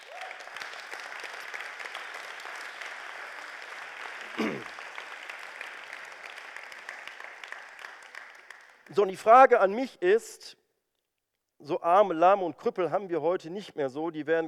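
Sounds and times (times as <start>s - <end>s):
audience applause: 0.0s - 8.9s
speech: 4.4s - 4.8s, 8.9s - 10.6s, 11.6s - 14.4s.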